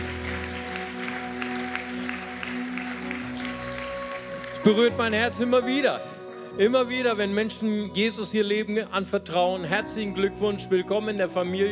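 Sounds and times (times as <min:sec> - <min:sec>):
audience applause: 0:00.0 - 0:05.8
sustained low musical tone: 0:00.0 - 0:11.7
speech: 0:04.6 - 0:11.7.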